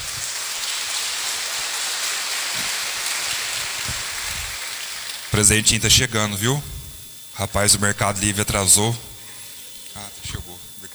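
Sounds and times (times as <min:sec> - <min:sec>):
applause: 0:00.0 - 0:05.4
speech: 0:05.4 - 0:06.8, 0:07.4 - 0:09.1.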